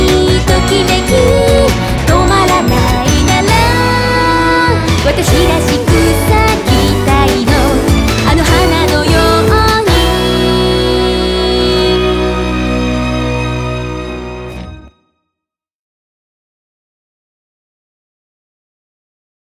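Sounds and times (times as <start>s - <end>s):
half song chorus: 0.0s - 14.9s.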